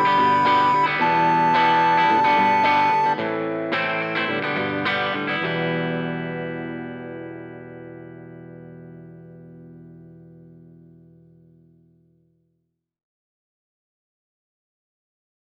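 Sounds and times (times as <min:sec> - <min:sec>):
grunge music: 0:00.0 - 0:10.7.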